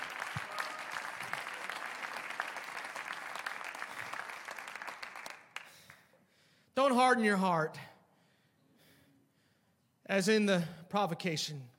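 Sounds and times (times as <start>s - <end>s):
audience clapping hands: 0.0s - 6.0s
speech: 6.9s - 7.9s, 10.1s - 11.7s.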